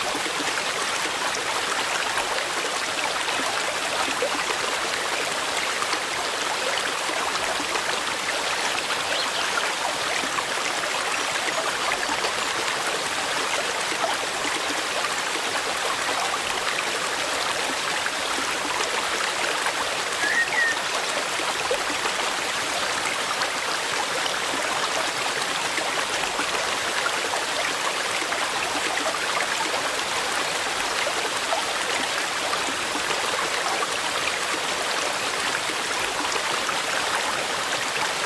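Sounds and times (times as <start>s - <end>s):
mountain stream flowing: 0.0s - 38.2s.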